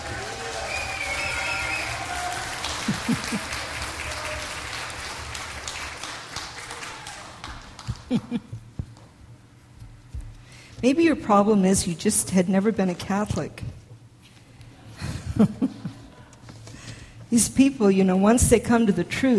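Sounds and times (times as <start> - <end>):
audience applauding: 0.0 - 8.5
laughter: 2.2 - 4.5, 7.7 - 8.8, 14.8 - 16.5
speech: 2.9 - 3.6, 8.1 - 8.6, 10.8 - 13.8, 15.4 - 15.8, 17.3 - 19.3.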